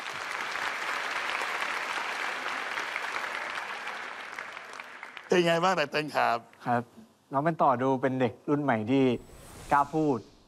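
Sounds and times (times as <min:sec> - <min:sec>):
crowd applause: 0:00.0 - 0:05.8
speech: 0:05.4 - 0:10.3.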